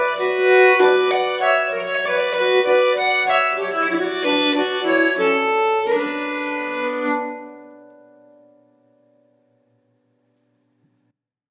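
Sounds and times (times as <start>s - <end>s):
nyckelharpa playing a polska: 0.0s - 8.6s.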